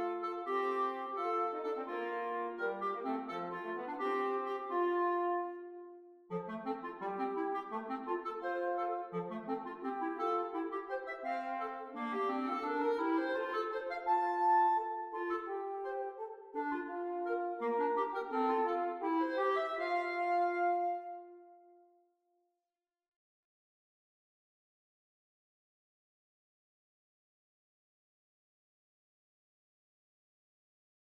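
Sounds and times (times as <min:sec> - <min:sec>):
horn in a duet: 0:00.0 - 0:10.6, 0:15.2 - 0:21.6
clarinet in a duet: 0:00.0 - 0:22.0.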